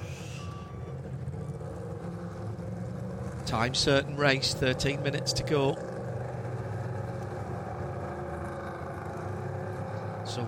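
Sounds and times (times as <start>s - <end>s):
race car engine sounding wrong as it pulls out: 0.0s - 10.4s
speech: 3.5s - 5.9s.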